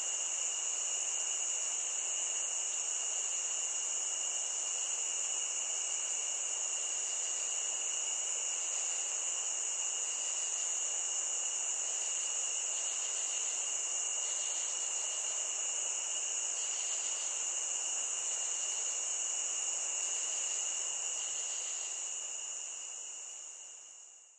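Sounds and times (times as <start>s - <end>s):
cricket chorus chirping: 0.0s - 24.3s.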